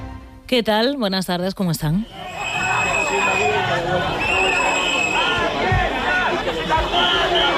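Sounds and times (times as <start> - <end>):
speech: 0.5 - 2.2
crowd murmur at a rally in Ceuta: 2.1 - 7.5.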